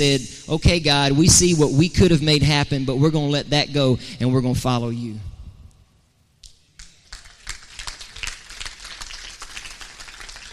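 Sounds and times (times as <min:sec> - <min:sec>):
speech: 0:00.0 - 0:05.3
audience applause: 0:06.8 - 0:10.5.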